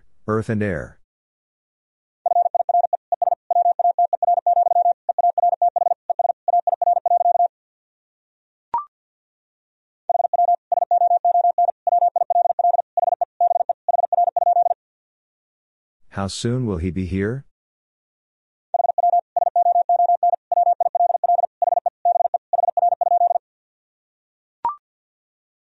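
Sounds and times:
speech: 0.3 - 1.0, 16.2 - 17.5
very fast Morse code tones at 50 words per minute: 2.3 - 7.5, 10.1 - 14.8, 18.8 - 23.4.

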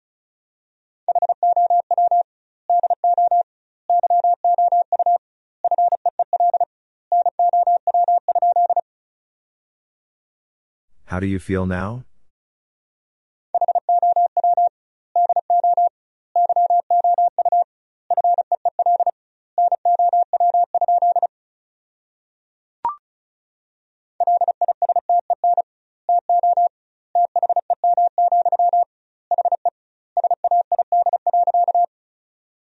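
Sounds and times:
rapid Morse code tones: 1.1 - 8.8, 13.6 - 21.3, 24.2 - 31.9
speech: 11.1 - 12.1.

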